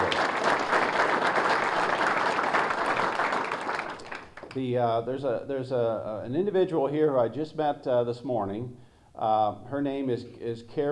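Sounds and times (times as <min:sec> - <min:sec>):
audience applause: 0:00.0 - 0:04.6
speech: 0:04.6 - 0:10.8.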